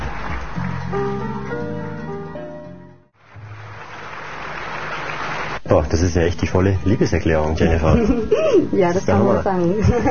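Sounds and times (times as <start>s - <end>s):
audience applause at live concert: 0.0s - 1.9s, 3.2s - 8.0s
speech: 0.9s - 1.4s, 5.7s - 10.0s
laughter: 6.8s - 10.0s.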